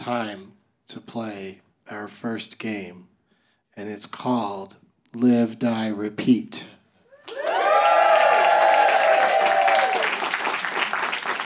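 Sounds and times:
speech: 0:00.0 - 0:03.1, 0:03.8 - 0:07.7
audience cheering and applause: 0:07.1 - 0:11.4.

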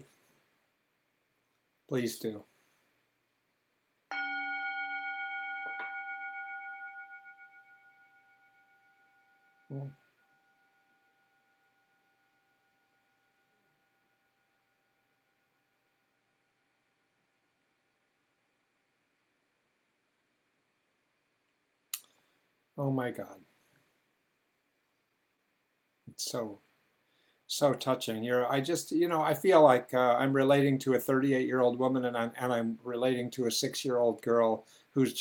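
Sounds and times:
speech: 0:01.9 - 0:02.5, 0:09.7 - 0:10.0, 0:22.8 - 0:23.5, 0:26.2 - 0:26.6, 0:27.5 - 0:35.1
bell ringing: 0:04.1 - 0:13.0.

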